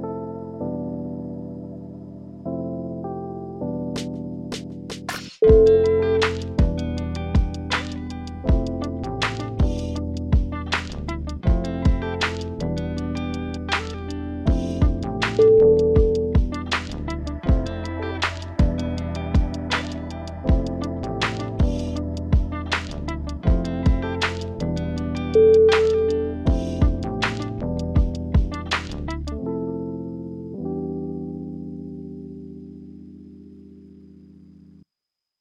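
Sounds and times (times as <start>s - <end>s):
lofi hip hop: 3.6s - 29.7s.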